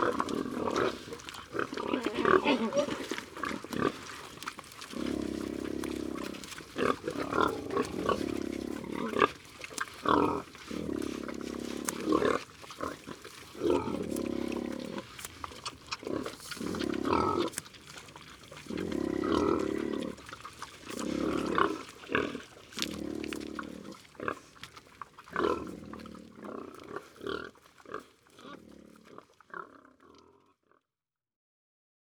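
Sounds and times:
pigs eating: 0.0s - 30.2s.

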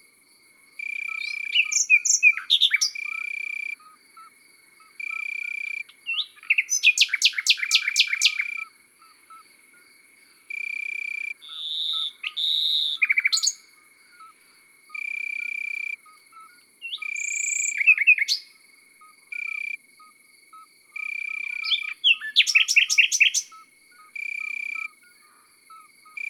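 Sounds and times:
common nightingale singing in the countryside: 0.8s - 4.3s, 5.0s - 9.5s, 10.6s - 26.2s
birds singing in the countryside: 1.1s - 3.2s, 6.0s - 9.4s, 11.4s - 14.3s, 16.1s - 18.4s, 21.3s - 24.2s.

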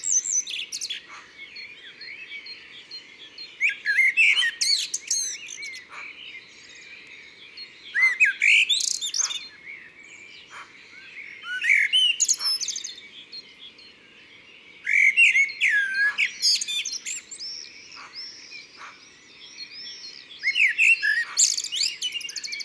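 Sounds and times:
great tit singing: 0.0s - 22.6s.

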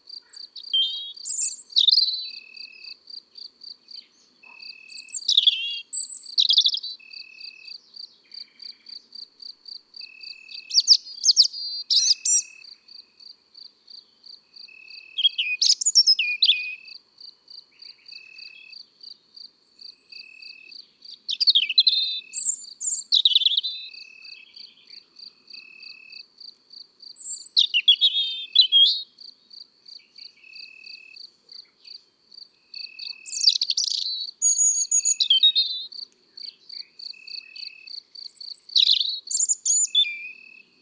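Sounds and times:
European robin singing in the countryside: 0.2s - 2.9s, 3.9s - 9.1s, 10.2s - 12.7s, 15.1s - 16.9s, 20.8s - 25.1s, 27.2s - 29.2s, 32.8s - 40.6s.

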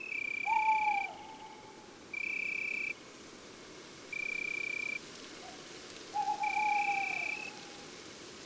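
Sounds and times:
female tawny owl calling in woods and forests: 0.1s - 2.9s, 4.2s - 7.9s.

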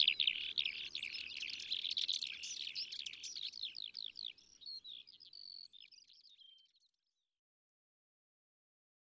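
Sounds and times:
yellowhammer singing: 0.0s - 5.3s.

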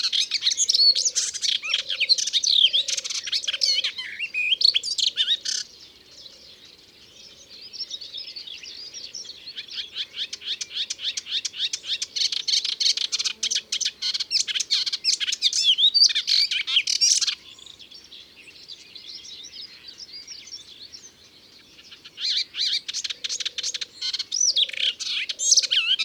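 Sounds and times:
Melodious warbler song: 0.0s - 26.0s.

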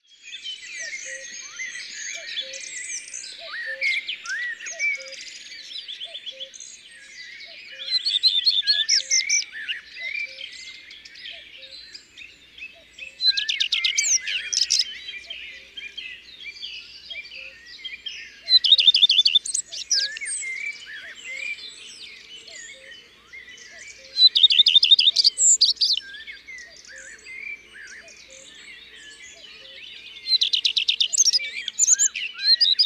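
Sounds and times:
common redstart song: 0.0s - 32.8s.

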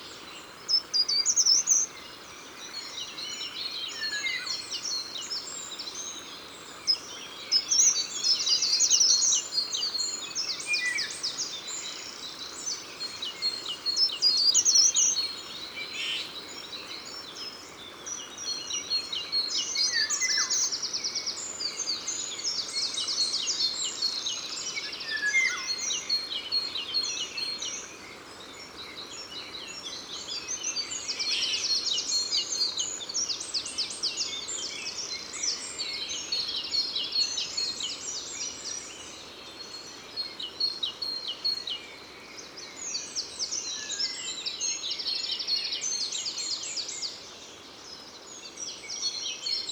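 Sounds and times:
Grimpereau des jardins short-toed treecreeper: 0.0s - 49.7s.

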